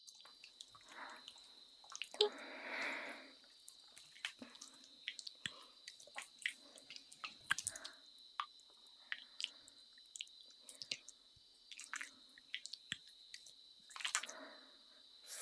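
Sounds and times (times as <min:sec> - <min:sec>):
massage oil dripping: 0:00.3 - 0:15.1.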